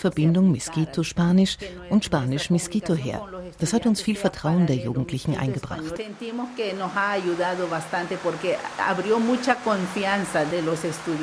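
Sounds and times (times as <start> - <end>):
speech: 0.0 - 11.2
heavy tropical rain downpour: 5.8 - 11.2.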